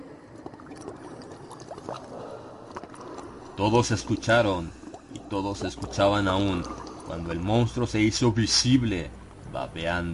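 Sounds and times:
foul sloshing splashing liquid: 0:00.0 - 0:07.8
speech: 0:03.6 - 0:10.1.

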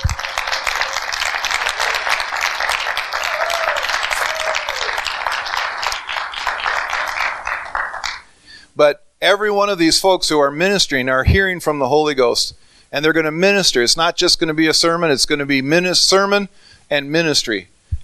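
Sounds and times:
audience applause: 0:00.0 - 0:08.3
speech: 0:08.8 - 0:17.7.

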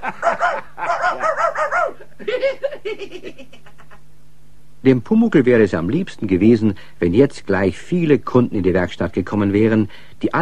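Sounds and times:
laughter: 0:00.0 - 0:04.0
voice imitating dog barking: 0:00.1 - 0:02.2
speech: 0:02.9 - 0:03.7, 0:04.8 - 0:10.4.

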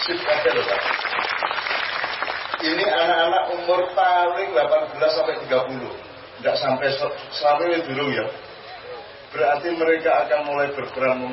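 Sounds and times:
speech: 0:00.0 - 0:00.9, 0:02.6 - 0:08.5, 0:09.3 - 0:11.3
audience applause at an Indonesian religious talk gathering: 0:00.0 - 0:03.2.

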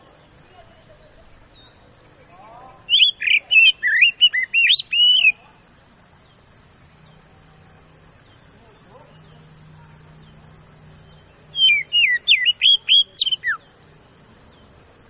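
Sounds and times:
Oriental magpie-robin singing fast loud whistled lure song: 0:02.8 - 0:05.4, 0:11.5 - 0:13.7.

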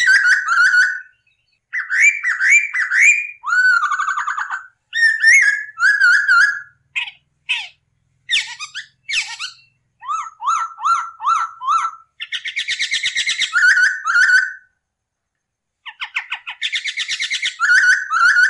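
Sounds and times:
masked laughingthrush song: 0:00.0 - 0:14.7, 0:15.8 - 0:18.4.

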